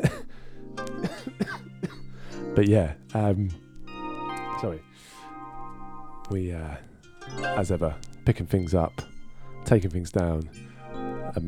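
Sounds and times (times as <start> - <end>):
man clearing throat and coughing: 0.0 - 0.3, 1.0 - 2.1
speech: 2.6 - 3.6, 4.6 - 5.1, 6.3 - 9.1, 9.7 - 10.7.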